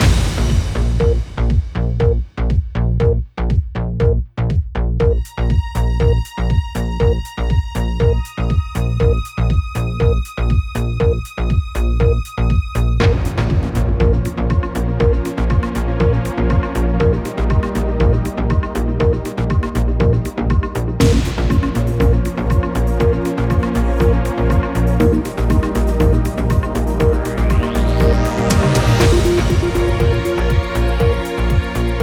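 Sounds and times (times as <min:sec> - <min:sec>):
news countdown music: 0:00.0 - 0:04.2, 0:05.0 - 0:32.0.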